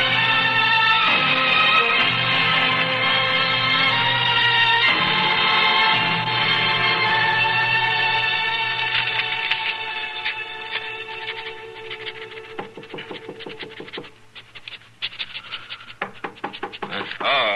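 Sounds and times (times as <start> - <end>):
droning musical backdrop: 0.0 - 13.8
knocking on an office door: 12.6 - 14.0, 16.0 - 17.5.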